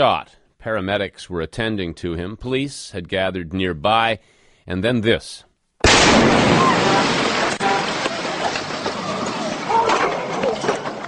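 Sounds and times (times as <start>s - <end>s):
speech: 0.0s - 7.0s
car bomb explosion: 5.8s - 9.7s.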